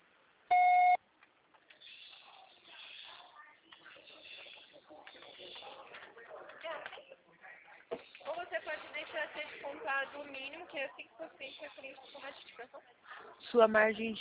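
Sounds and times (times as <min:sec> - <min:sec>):
voicemail recording beep: 0:00.5 - 0:01.0
mixed sounds: 0:00.5 - 0:14.1
speech: 0:13.5 - 0:14.1.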